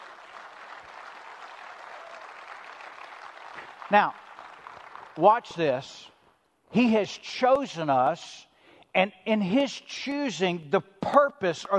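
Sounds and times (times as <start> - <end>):
audience clapping: 0.0 - 5.8
speech: 3.9 - 4.2, 5.2 - 6.1, 6.7 - 11.7.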